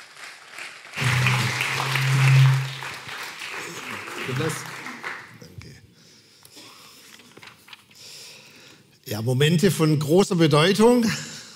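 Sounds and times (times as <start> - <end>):
audience applause: 0.0 - 5.4
speech: 4.3 - 4.8, 9.1 - 11.3.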